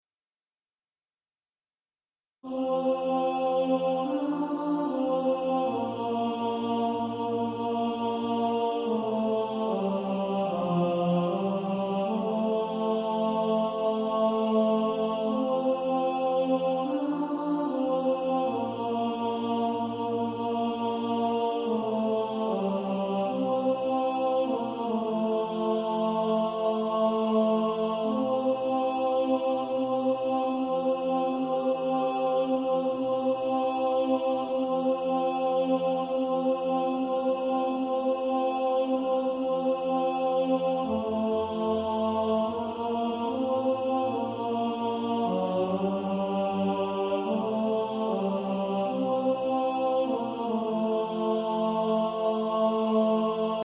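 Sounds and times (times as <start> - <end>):
tenor practice music: 2.5 - 53.6.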